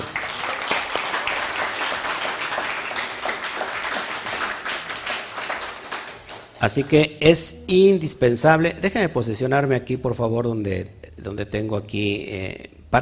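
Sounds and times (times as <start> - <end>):
audience applause: 0.0 - 6.6
speech: 6.6 - 13.0.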